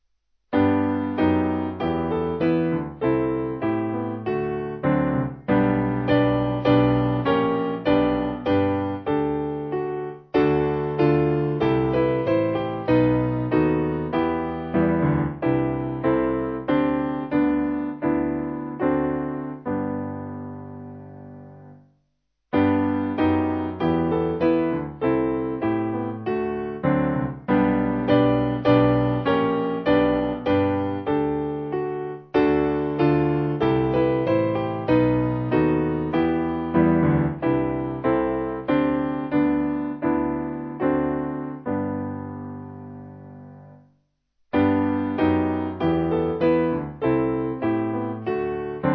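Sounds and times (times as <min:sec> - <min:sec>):
piano: 0:00.0 - 0:48.9.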